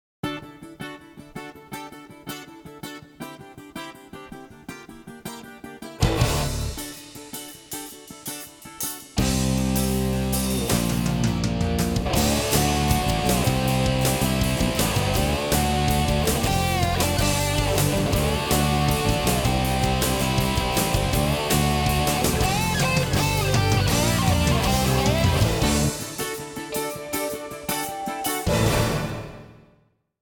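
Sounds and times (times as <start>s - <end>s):
intro music: 6.0s - 6.9s, 9.2s - 29.7s.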